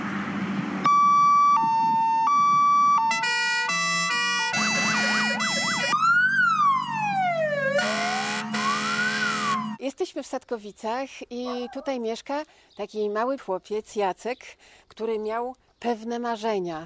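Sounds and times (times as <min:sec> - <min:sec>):
fire engine siren: 0:00.8 - 0:09.8
speech: 0:10.2 - 0:16.8.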